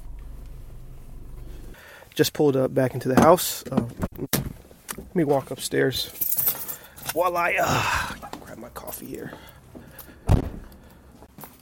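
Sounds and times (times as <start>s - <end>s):
car engine starting: 0.0s - 1.8s
speech: 2.2s - 4.4s, 5.2s - 6.4s, 7.1s - 9.5s.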